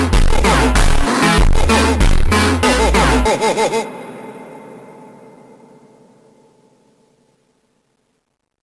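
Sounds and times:
super slowed funk track: 0.0s - 3.8s.

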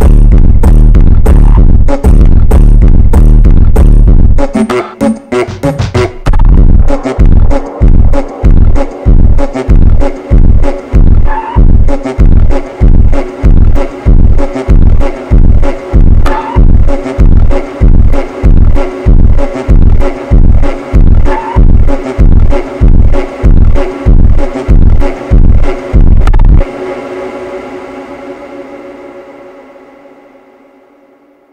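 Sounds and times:
boosted bass: 0.0s - 27.9s.

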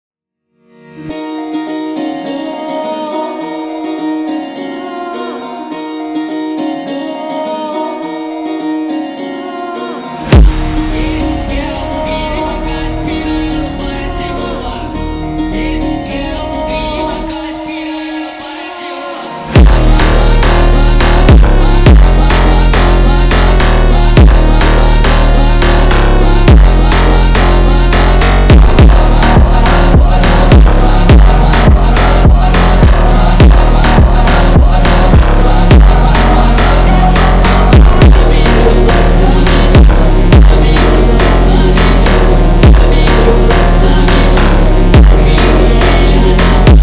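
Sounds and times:
funk music: 10.2s - 46.8s.

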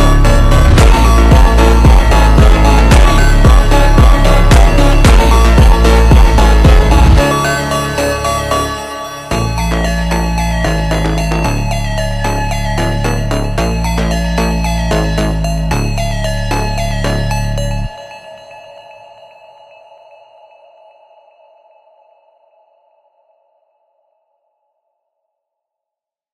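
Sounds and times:
slowed reverb music: 0.0s - 18.9s.

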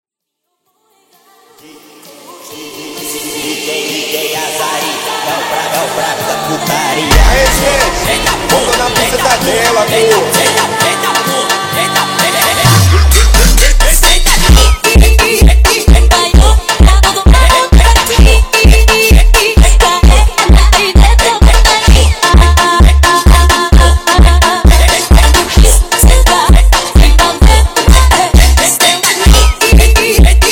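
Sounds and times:
funk music: 3.5s - 30.5s.

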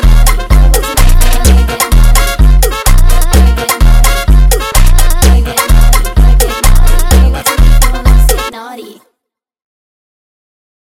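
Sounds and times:
sped up funk music: 0.0s - 8.5s.

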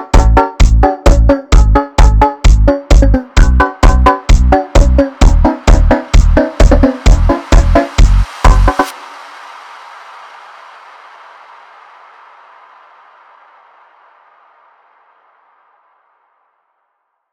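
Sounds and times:
funk instrumental: 0.0s - 8.9s.

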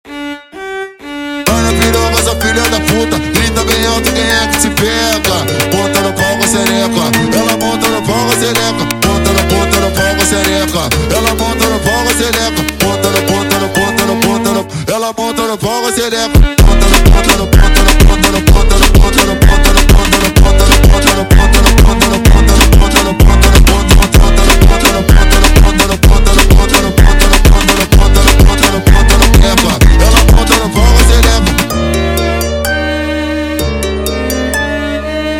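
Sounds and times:
slowed brega violin music: 0.0s - 14.6s, 15.3s - 35.3s.

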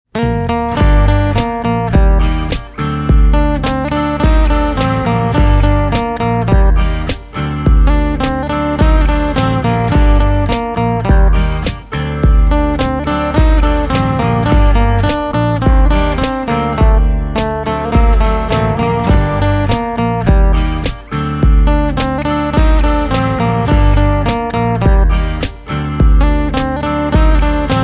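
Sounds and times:
guitar: 0.1s - 27.8s.

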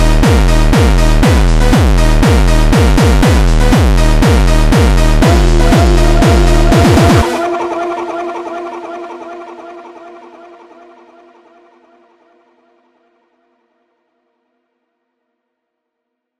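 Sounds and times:
slowed jumpstyle music: 0.0s - 11.6s.

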